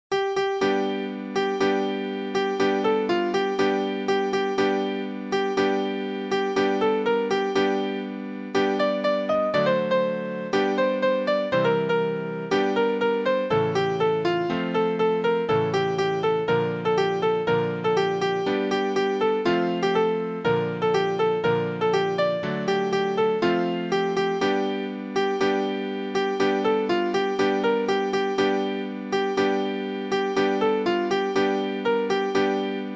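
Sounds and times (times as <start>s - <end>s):
piano: 0.1s - 32.9s.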